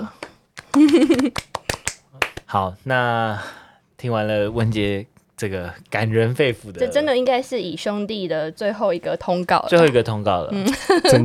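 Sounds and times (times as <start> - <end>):
crowd clapping: 0.2 - 2.5
speech: 0.8 - 1.5, 2.5 - 11.2.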